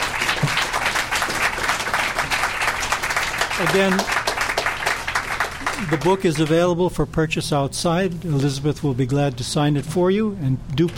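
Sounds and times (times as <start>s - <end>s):
audience applause: 0.0s - 6.6s
speech: 3.6s - 4.2s, 5.8s - 10.9s.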